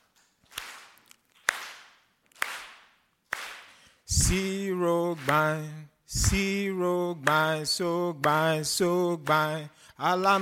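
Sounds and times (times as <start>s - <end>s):
hand claps: 0.0s - 4.4s, 5.1s - 5.6s, 7.2s - 7.6s, 8.2s - 8.5s, 9.2s - 9.6s, 10.2s - 10.4s
speech: 4.3s - 10.4s.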